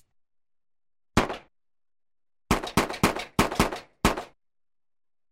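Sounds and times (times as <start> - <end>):
semi-automatic .45 caliber pistol: 1.2 - 1.5, 2.5 - 4.3.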